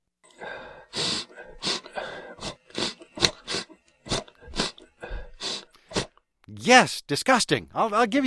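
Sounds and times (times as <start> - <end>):
nose sniffling: 0.4 - 6.2
speech: 6.6 - 8.2.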